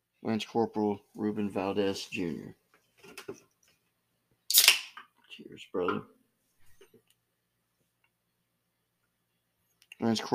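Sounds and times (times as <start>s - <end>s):
speech: 0.2s - 3.4s, 5.5s - 6.2s, 10.0s - 10.3s
beer being opened: 4.5s - 5.0s.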